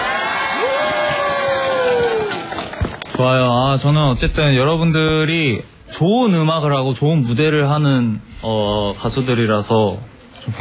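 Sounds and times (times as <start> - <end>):
audience applause and cheering: 0.0 - 3.6
speech: 3.2 - 10.6.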